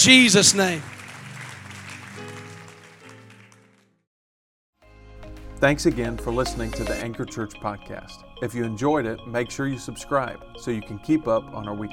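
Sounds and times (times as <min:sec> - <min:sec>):
speech: 0:00.0 - 0:01.0, 0:05.6 - 0:11.9
audience clapping hands: 0:00.0 - 0:04.0
sustained musical tones: 0:05.8 - 0:07.6.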